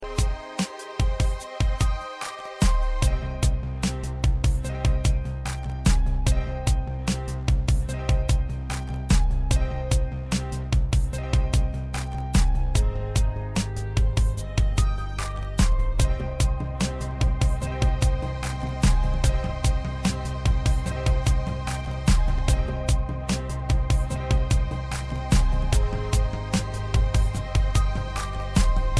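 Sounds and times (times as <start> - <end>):
music beat: 0.0 - 28.9.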